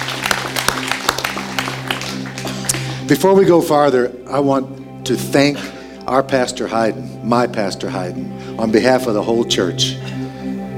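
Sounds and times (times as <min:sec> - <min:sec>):
audience clapping: 0:00.0 - 0:03.1
speech: 0:03.1 - 0:10.1.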